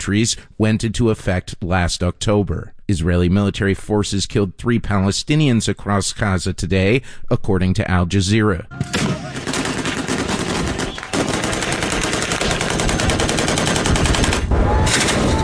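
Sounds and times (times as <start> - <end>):
speech: 0.0 - 9.1
gunfire from Yemeni government forces at Houthi fighters: 8.9 - 15.3.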